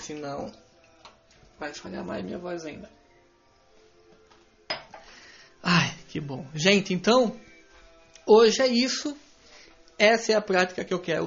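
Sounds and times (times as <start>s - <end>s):
speech: 0.1s - 0.6s, 1.6s - 3.0s, 6.1s - 7.5s, 8.2s - 9.2s, 10.0s - 11.2s
glass or cup clinking: 4.7s - 5.2s.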